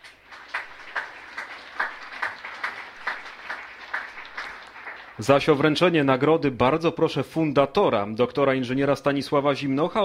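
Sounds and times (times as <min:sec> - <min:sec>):
audience applause at award ceremony: 0:00.0 - 0:06.0
speech: 0:05.2 - 0:10.0.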